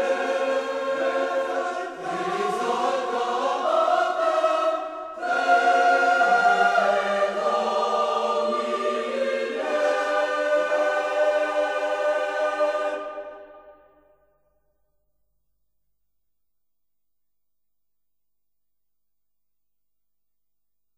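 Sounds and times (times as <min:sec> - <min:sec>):
chorus singing Gregorian polyphony: 0:00.0 - 0:14.1.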